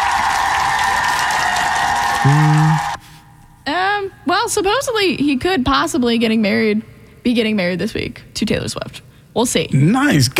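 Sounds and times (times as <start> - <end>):
applause: 0.0 - 3.0
speech: 2.2 - 2.8, 4.5 - 10.3
low horn-like tone: 2.2 - 3.0.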